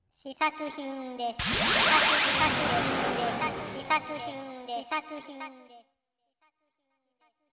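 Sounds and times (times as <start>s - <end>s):
sound effect: 1.4s - 4.8s.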